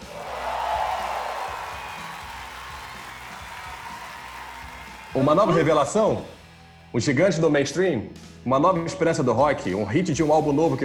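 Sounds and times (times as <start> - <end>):
applause: 0.0 - 6.4
speech: 5.2 - 10.8.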